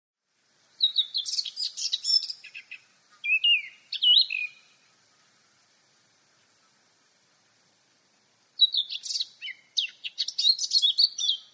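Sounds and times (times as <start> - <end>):
Eurasian blackcap warbling song: 0.8 - 4.8, 8.6 - 11.5.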